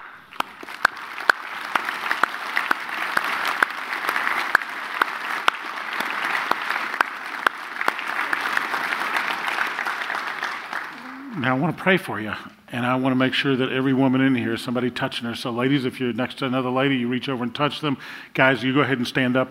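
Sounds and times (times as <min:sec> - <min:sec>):
audience applauding: 0:00.0 - 0:11.7
speech: 0:11.5 - 0:19.4.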